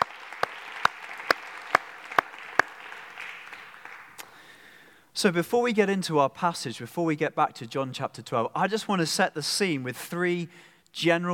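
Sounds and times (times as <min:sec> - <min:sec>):
audience applause: 0:00.0 - 0:04.8
speech: 0:05.2 - 0:11.3.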